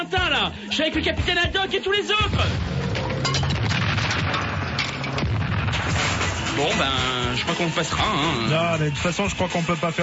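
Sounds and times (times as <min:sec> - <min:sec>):
speech: 0:00.0 - 0:03.0, 0:06.6 - 0:10.0
dense barrage of firecracker bangs crackling and popping: 0:02.4 - 0:08.1.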